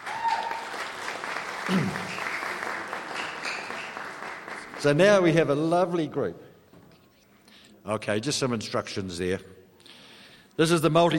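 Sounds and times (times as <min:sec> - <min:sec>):
audience applause: 0:00.0 - 0:05.4
speech: 0:01.7 - 0:02.1, 0:04.8 - 0:06.4, 0:07.9 - 0:09.5, 0:10.6 - 0:11.1.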